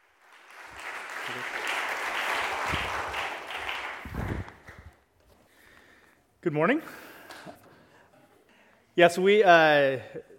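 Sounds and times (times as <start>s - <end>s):
church audience applause greeting a guest pastor: 0.0s - 5.0s
speech: 6.4s - 7.1s, 9.0s - 10.3s.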